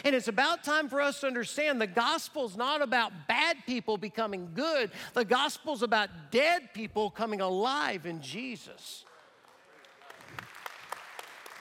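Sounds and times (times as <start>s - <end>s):
speech: 0.0s - 9.1s
audience clapping: 9.0s - 11.6s.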